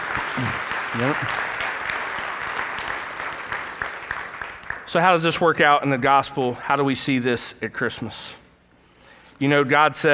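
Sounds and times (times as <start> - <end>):
audience applause: 0.0 - 5.0
speech: 0.4 - 1.5, 4.9 - 8.4, 9.4 - 10.1.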